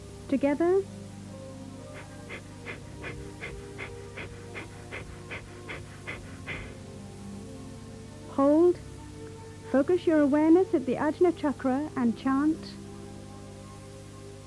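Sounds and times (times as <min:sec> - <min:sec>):
speech: 0:00.3 - 0:01.0, 0:09.7 - 0:12.8
Kapalabhati yoga breathing with rapid forceful nasal exhalations: 0:01.8 - 0:06.9.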